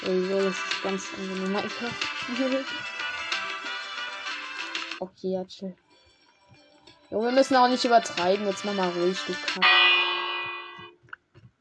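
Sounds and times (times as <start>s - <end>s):
speech: 0.0s - 3.0s, 5.0s - 5.8s, 7.1s - 9.9s
hanging bell gong ringing: 9.6s - 10.9s.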